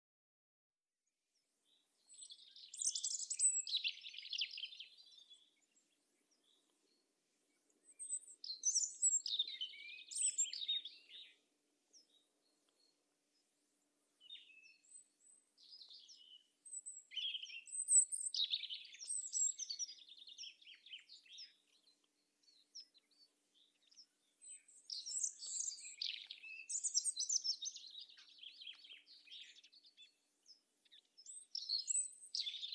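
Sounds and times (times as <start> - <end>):
European robin singing warbling phrases: 2.1 - 5.5, 7.8 - 11.4, 14.2 - 21.9, 22.5 - 30.2, 30.9 - 32.7.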